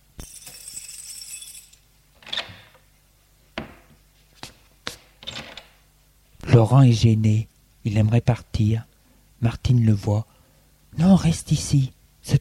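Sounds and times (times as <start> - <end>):
front door opening: 2.2 - 2.9
speech: 6.6 - 10.3, 11.0 - 12.3.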